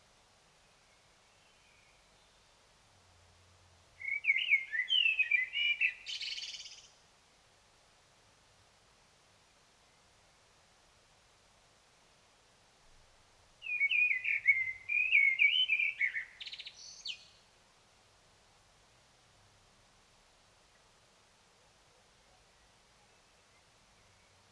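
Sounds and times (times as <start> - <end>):
Common blackbird singing: 4.0 - 6.9, 13.6 - 17.4.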